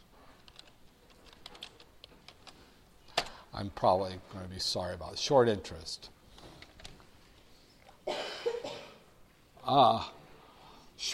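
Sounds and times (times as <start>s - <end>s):
hiss: 0.0s - 11.1s
typing on a computer keyboard: 0.4s - 3.4s
speech: 3.6s - 6.2s, 9.7s - 10.2s.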